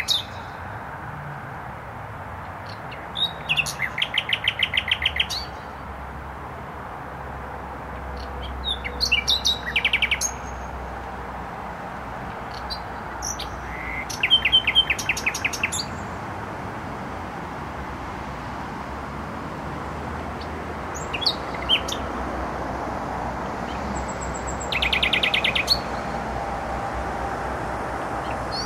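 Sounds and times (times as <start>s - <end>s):
nightingale song: 0.0s - 0.6s, 2.6s - 5.8s, 8.2s - 10.8s, 12.4s - 16.2s, 20.4s - 22.2s, 23.6s - 26.3s, 28.0s - 28.6s
heavy motorway traffic noise: 0.0s - 28.6s.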